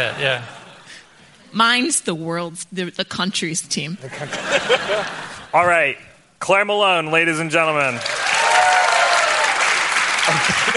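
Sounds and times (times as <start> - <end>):
speech: 0.0 - 0.6, 1.5 - 8.2
laughter: 0.0 - 1.0, 4.0 - 5.6, 10.2 - 10.7
muted polite applause at a live show: 7.8 - 10.7.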